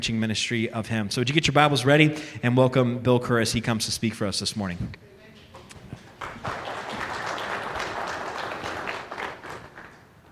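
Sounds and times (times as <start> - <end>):
speech: 0.0 - 5.1
audience applauding: 6.0 - 10.3.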